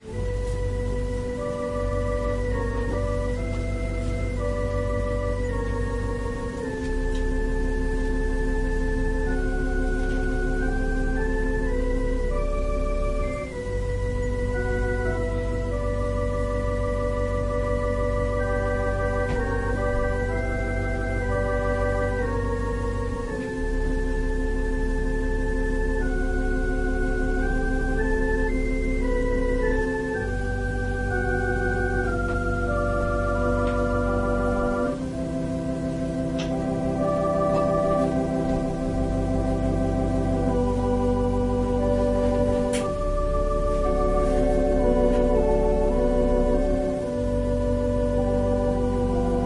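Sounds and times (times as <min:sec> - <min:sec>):
organ playing a prelude: 0:00.0 - 0:49.4.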